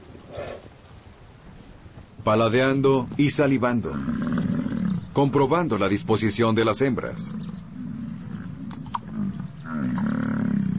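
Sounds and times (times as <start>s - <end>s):
steady noise: 0.0s - 10.7s
speech: 2.2s - 4.3s, 5.2s - 7.6s
bison grunting and snorting during rut: 3.7s - 10.7s.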